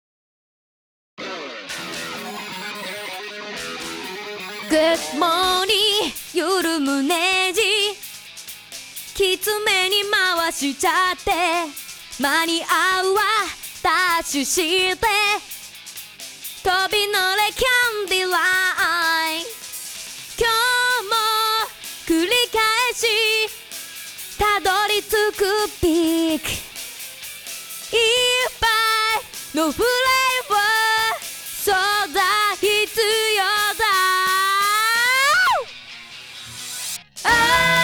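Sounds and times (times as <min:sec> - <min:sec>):
a cappella singing: 0:04.6 - 0:08.0, 0:09.2 - 0:15.4, 0:16.7 - 0:19.5, 0:20.4 - 0:23.6, 0:24.4 - 0:26.6, 0:28.0 - 0:35.1, 0:37.2 - 0:37.8.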